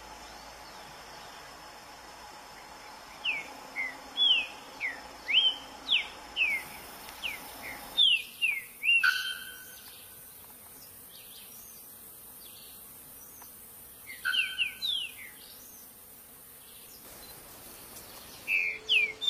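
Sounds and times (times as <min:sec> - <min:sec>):
green-winged saltator singing: 0:03.2 - 0:09.9, 0:14.1 - 0:15.6, 0:17.2 - 0:19.2.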